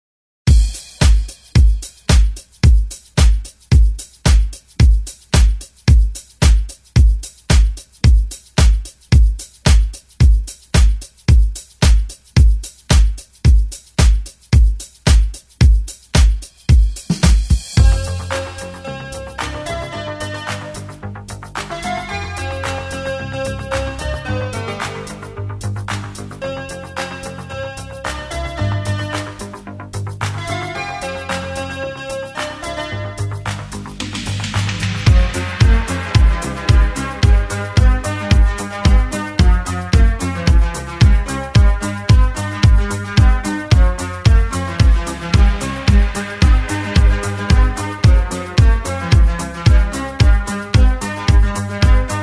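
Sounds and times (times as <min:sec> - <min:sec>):
eighties drum beat: 0:00.5 - 0:23.0, 0:33.3 - 0:52.2.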